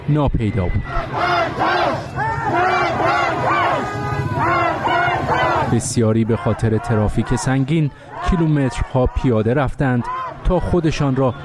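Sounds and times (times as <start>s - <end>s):
speech: 0.1s - 4.6s, 5.7s - 11.4s
steady roar of crowd noise: 0.4s - 11.4s
huge crowd of mourners chanting: 0.8s - 9.0s.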